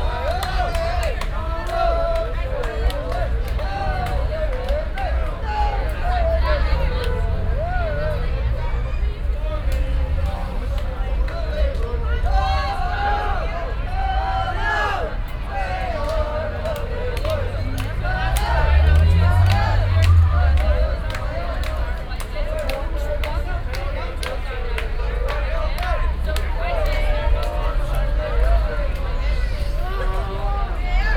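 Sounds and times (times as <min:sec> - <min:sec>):
city streets at night in Belfast: 0:00.0 - 0:31.1.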